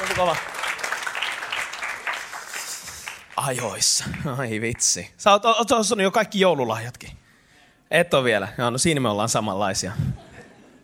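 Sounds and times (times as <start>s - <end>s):
audience applause: 0.0s - 4.3s
speech: 0.2s - 0.6s, 3.4s - 7.2s, 7.9s - 10.2s.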